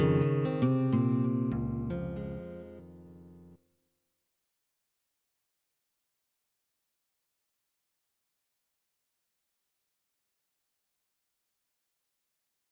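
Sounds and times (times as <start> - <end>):
restful guitar music: 0.0 - 3.6.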